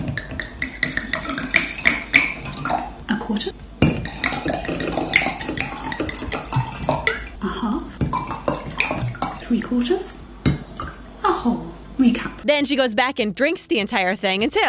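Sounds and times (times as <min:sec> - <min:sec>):
wine pouring into a glass: 0:00.4 - 0:03.0, 0:04.0 - 0:07.4, 0:08.1 - 0:09.5
speech: 0:03.3 - 0:03.6, 0:09.6 - 0:10.2, 0:11.4 - 0:14.6.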